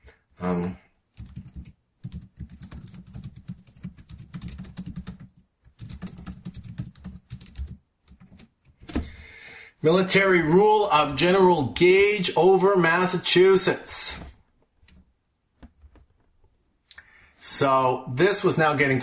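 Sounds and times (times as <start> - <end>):
speech: 0.4 - 0.8, 9.8 - 14.3, 17.6 - 19.0
typing on a computer keyboard: 1.2 - 8.8.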